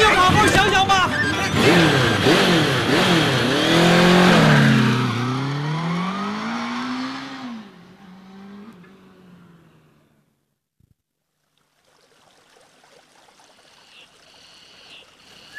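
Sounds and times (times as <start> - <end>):
motorcycle engine revving: 0.2 - 10.4.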